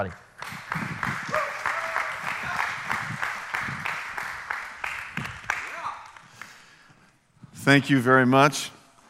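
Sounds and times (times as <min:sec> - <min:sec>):
speech: 0:00.0 - 0:00.8, 0:07.7 - 0:08.8
audience clapping: 0:00.0 - 0:06.9.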